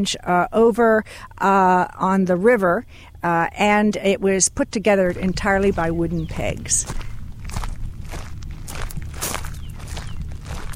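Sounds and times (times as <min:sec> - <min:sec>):
speech: 0:00.0 - 0:07.0
low rumble: 0:04.6 - 0:10.7
footsteps walking through a cemetery: 0:05.0 - 0:10.7.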